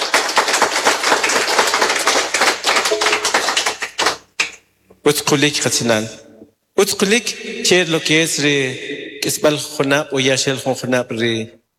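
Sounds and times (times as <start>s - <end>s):
audience applause: 0.0s - 4.3s
speech: 5.0s - 6.2s, 6.8s - 11.6s.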